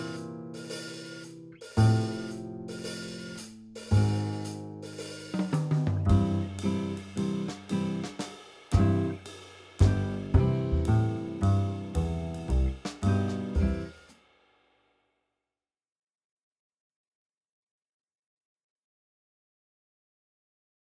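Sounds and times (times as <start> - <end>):
big band boogie swing backing music: 0.0 - 14.0.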